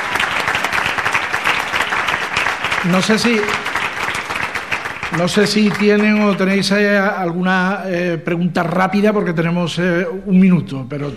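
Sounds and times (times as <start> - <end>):
audience applause: 0.0 - 6.6
speech: 2.8 - 3.7, 5.1 - 11.1.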